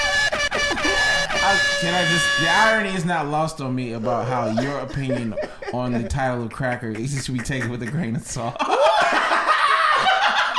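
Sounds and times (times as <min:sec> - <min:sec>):
laughter: 0:00.0 - 0:02.4, 0:03.9 - 0:10.5
big truck horn honking: 0:00.0 - 0:03.0
speech: 0:01.5 - 0:08.7.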